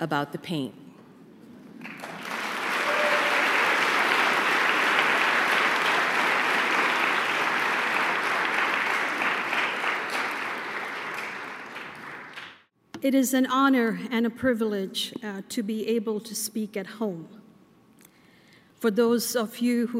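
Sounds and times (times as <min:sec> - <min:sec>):
speech: 0:00.0 - 0:00.8, 0:13.0 - 0:17.4, 0:18.8 - 0:19.9
audience applause welcoming a speaker to the platform: 0:01.8 - 0:12.6.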